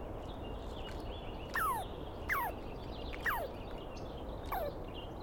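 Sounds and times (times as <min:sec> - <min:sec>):
birdsong: 0:00.1 - 0:05.2
Douglas squirrel screeching: 0:01.6 - 0:02.6, 0:03.2 - 0:03.5, 0:04.5 - 0:04.7.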